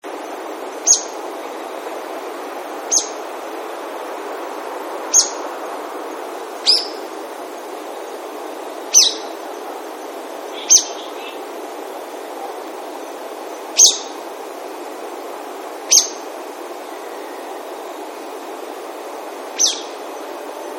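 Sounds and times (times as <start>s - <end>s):
hiss: 0.0s - 20.7s
brown-eared bulbul shrill calls: 0.8s - 1.2s, 2.9s - 3.2s, 5.1s - 5.4s, 6.6s - 7.1s, 8.9s - 9.4s, 10.5s - 11.4s, 13.7s - 14.2s, 15.9s - 16.3s, 19.5s - 20.1s.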